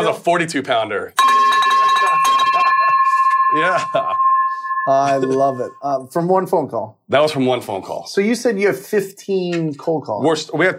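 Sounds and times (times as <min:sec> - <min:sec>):
speech: 0:00.0 - 0:01.6, 0:03.5 - 0:10.7
bell ringing: 0:01.2 - 0:06.0.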